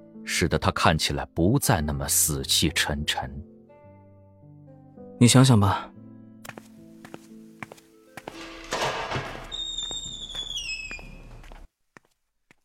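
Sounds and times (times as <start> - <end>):
speech: 0.3 - 3.5, 5.2 - 5.9
footsteps walking away: 6.4 - 12.6.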